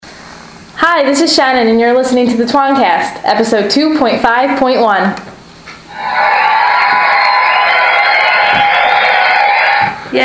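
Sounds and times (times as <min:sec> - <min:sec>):
speech: 0:00.8 - 0:05.3
shrill whoops and shouts: 0:05.9 - 0:10.0
crowd cheering and applauding: 0:05.9 - 0:10.1.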